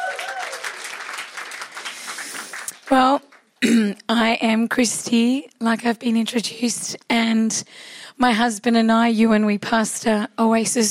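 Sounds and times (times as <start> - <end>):
audience clapping: 0.0 - 3.6
speech: 2.9 - 10.9.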